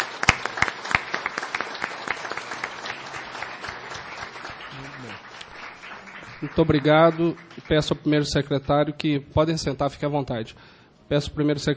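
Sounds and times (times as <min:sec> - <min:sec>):
applause in council chamber: 0:00.0 - 0:08.8
speech: 0:06.4 - 0:11.7.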